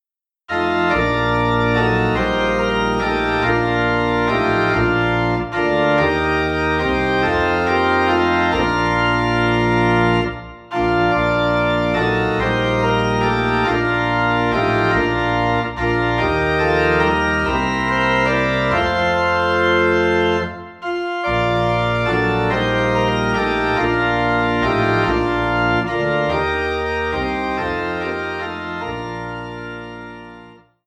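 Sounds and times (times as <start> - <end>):
organ piece in B flat: 0.5 - 30.8.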